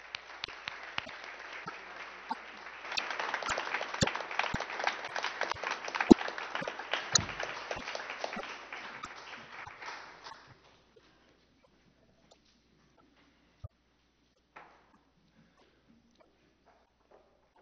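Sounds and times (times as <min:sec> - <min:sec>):
congregation applauding in church to welcome new members: 0:00.0 - 0:10.6.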